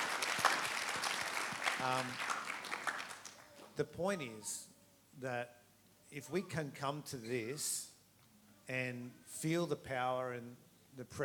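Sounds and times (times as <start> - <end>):
audience applause: 0.0 - 3.5
speech: 1.8 - 2.3, 3.8 - 7.9, 8.7 - 11.2.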